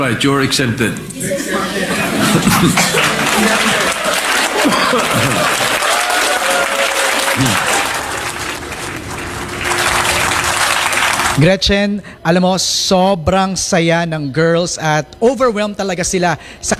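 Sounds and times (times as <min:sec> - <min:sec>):
speech: 0:00.0 - 0:04.0, 0:04.6 - 0:05.8, 0:07.4 - 0:07.7, 0:11.4 - 0:16.7
chuckles and chatting voices: 0:00.0 - 0:12.5
applause in the Senate chamber: 0:01.2 - 0:11.5.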